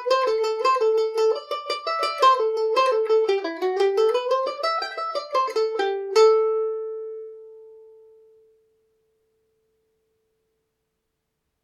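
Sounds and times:
Irish mandolin playing a jig in A dorian: 0.0 - 8.9.

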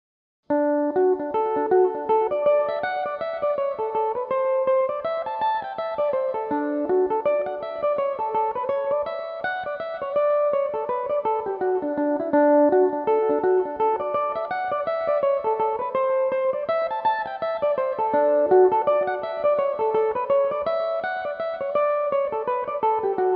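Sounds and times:
Irish mandolin playing in D major: 0.6 - 23.3.

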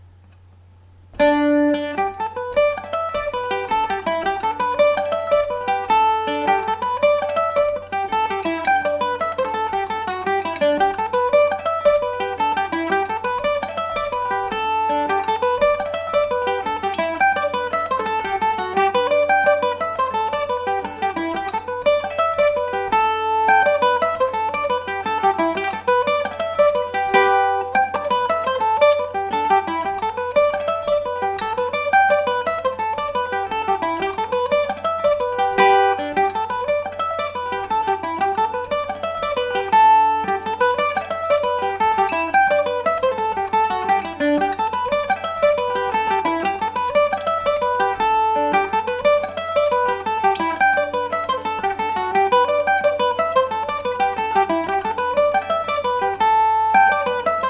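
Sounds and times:
mandolin: 0.0 - 57.4.

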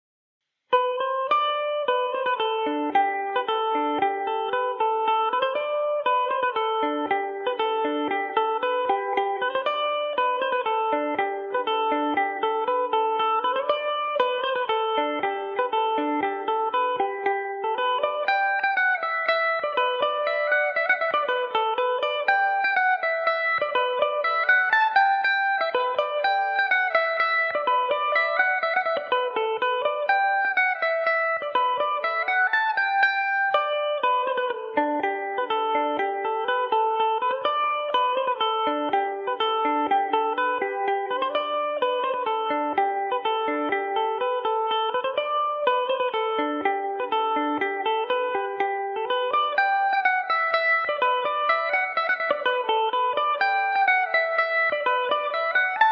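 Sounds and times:
mandolin playing a polka in G major: 0.7 - 55.9.

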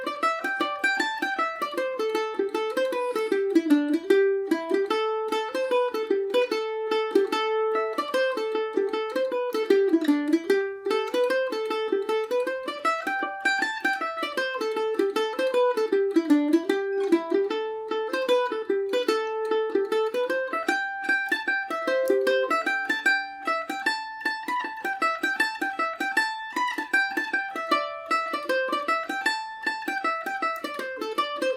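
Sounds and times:
Paris Swing Macaferri mandolin playing a hornpipe: 0.0 - 31.5.

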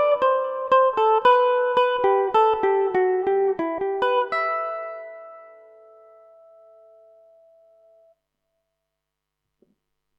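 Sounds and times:
Irish mandolin in E minor: 0.0 - 7.8.

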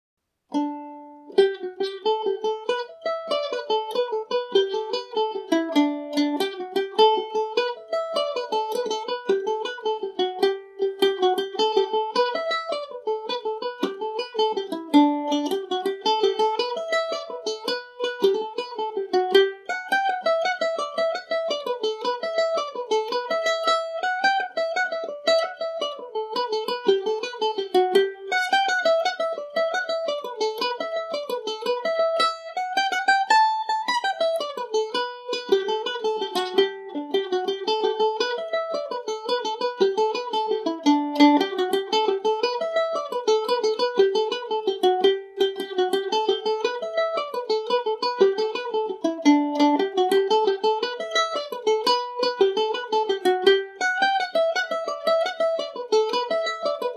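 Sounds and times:
Irish mandolin in G major: 0.2 - 56.9.

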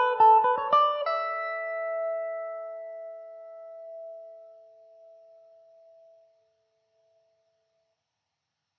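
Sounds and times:
Irish mandolin in E dorian: 0.0 - 4.6.

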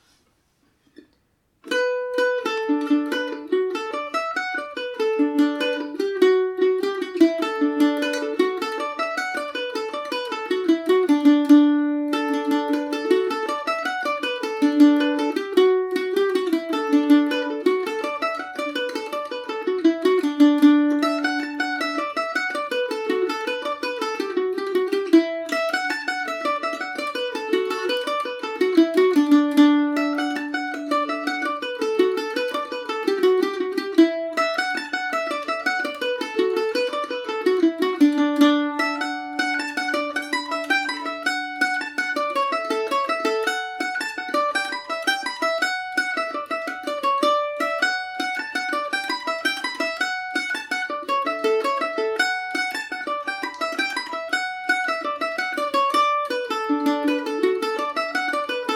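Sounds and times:
mandolin melody in D major: 0.0 - 58.7.

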